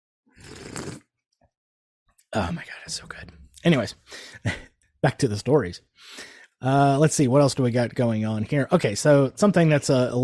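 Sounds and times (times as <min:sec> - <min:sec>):
slurping coffee: 0:00.4 - 0:01.1
speech: 0:02.3 - 0:10.2.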